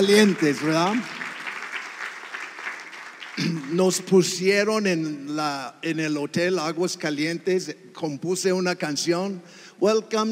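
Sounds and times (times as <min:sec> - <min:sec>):
speech: 0:00.0 - 0:01.2, 0:03.4 - 0:10.3
audience applause: 0:00.0 - 0:04.2.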